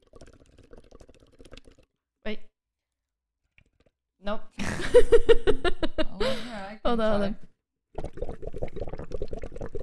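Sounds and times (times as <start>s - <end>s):
bubbles blown through a straw into a drink: 0.0s - 2.0s, 7.9s - 9.8s
speech: 2.3s - 2.5s, 4.3s - 7.5s.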